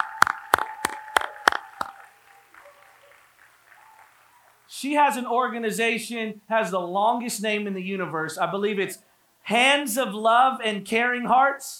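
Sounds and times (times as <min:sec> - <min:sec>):
audience clapping: 0:00.0 - 0:04.7
speech: 0:04.8 - 0:11.7.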